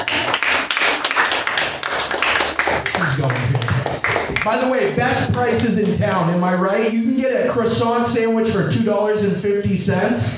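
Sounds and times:
crowd applause: 0:00.0 - 0:06.3
speech: 0:04.4 - 0:10.3.

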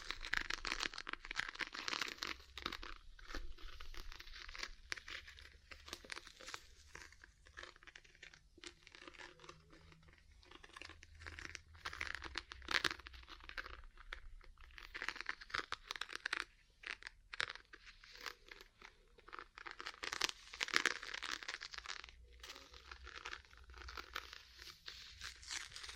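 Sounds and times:
ear cleaning rustling, crinkling and scratchy rubbing: 0:00.0 - 0:25.9.

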